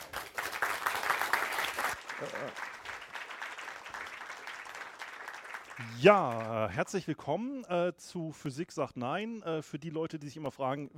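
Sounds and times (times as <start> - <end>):
audience applause: 0.0 - 6.7
speech: 2.2 - 2.7, 5.8 - 10.9.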